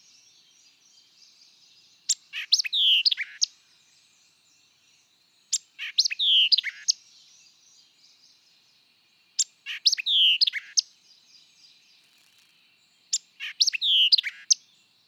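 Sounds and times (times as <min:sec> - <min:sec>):
white-eyed vireo song of sharp chips and slurred whistles: 0:02.1 - 0:03.5, 0:05.5 - 0:07.0, 0:09.4 - 0:10.9, 0:13.1 - 0:14.7.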